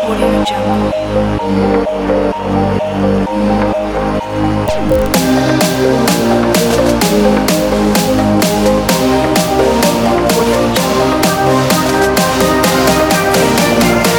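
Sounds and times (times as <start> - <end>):
uplifting motivational EDM: 0.0 - 14.1.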